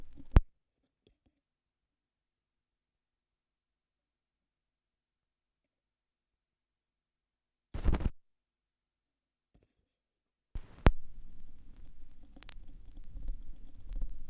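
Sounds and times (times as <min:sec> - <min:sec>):
vinyl record noise: 0:00.0 - 0:00.4, 0:07.8 - 0:08.2, 0:10.6 - 0:14.2.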